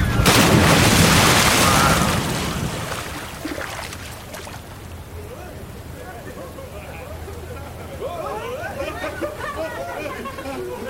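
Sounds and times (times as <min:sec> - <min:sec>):
water splash: 0:00.0 - 0:04.8
airplane landing on water: 0:00.0 - 0:08.2
laughter: 0:06.0 - 0:10.8.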